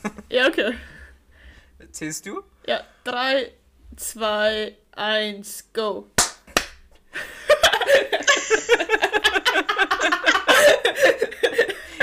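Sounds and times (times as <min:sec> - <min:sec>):
speech: 0:00.3 - 0:01.0, 0:01.8 - 0:06.2, 0:10.8 - 0:11.7
group clapping hands on cue: 0:06.2 - 0:06.8
people laughing: 0:07.2 - 0:12.0.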